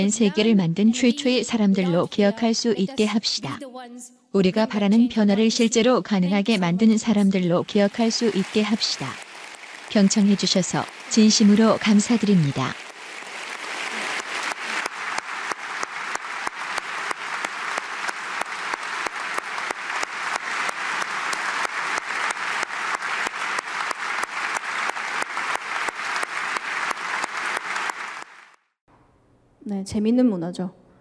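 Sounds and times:
speech: 0.0 - 9.3, 9.9 - 12.8, 29.9 - 30.8
loud applause from a large crowd: 7.8 - 28.6.

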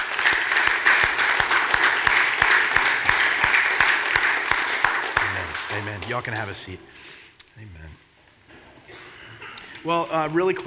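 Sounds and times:
audience applause: 0.0 - 6.7
speech: 6.1 - 8.0, 9.8 - 10.6.

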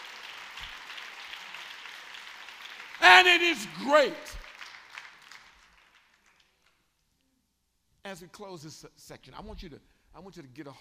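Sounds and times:
audience clapping: 0.0 - 6.8
speech: 3.1 - 4.4, 8.1 - 10.7.

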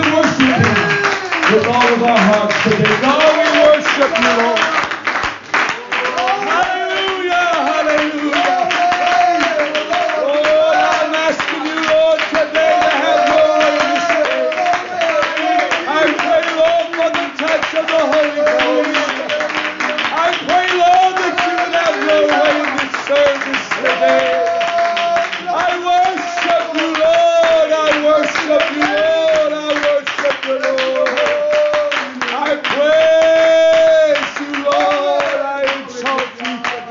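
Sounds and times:
audience clapping hands in worship: 0.0 - 36.8
speech: 4.0 - 4.7.

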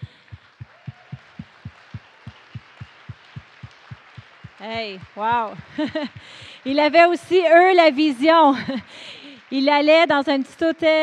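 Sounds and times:
thumping low beat: 0.0 - 6.3
crowd applauding: 0.0 - 10.6
laughter: 4.6 - 6.7, 8.5 - 8.9
speech: 4.6 - 11.0.

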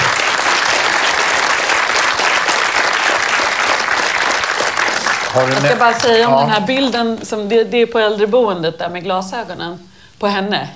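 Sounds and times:
audience applause: 0.0 - 6.8
speech: 5.3 - 10.7.

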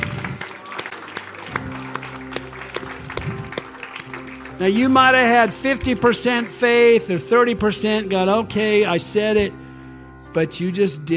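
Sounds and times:
audience clapping: 0.0 - 7.1
speech: 4.6 - 9.6, 10.3 - 11.1.

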